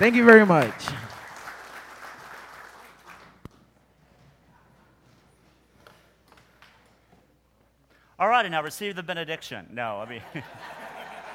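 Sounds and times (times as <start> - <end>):
speech: 0.0 - 1.0, 8.2 - 10.8
audience applause: 0.0 - 3.5
laughter: 10.0 - 11.3.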